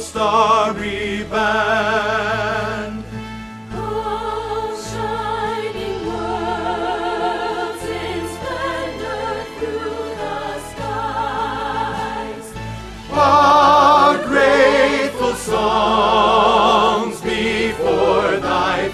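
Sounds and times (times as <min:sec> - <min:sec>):
tenor singing a hymn for choir rehearsal: 0:00.0 - 0:03.2, 0:03.8 - 0:18.9.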